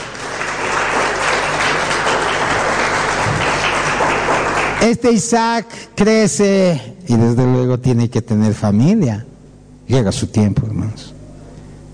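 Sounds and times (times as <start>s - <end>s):
large crowd clapping loudly: 0.0s - 5.2s
speech: 4.8s - 9.3s, 9.9s - 11.2s.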